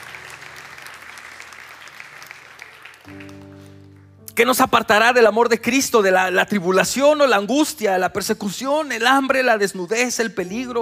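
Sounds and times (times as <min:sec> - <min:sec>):
church congregation clapping as an offering of praise: 0:00.0 - 0:04.5
speech: 0:03.1 - 0:03.5, 0:04.4 - 0:10.7.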